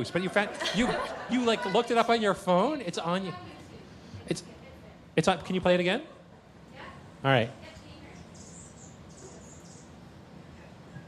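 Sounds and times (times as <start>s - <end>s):
laughter: 0.0s - 2.7s
speech: 0.0s - 3.6s, 4.3s - 4.6s, 5.2s - 6.2s, 7.2s - 7.7s
steady low hum: 0.0s - 11.0s
recorded hummingbird buzzy chirps: 8.1s - 10.2s.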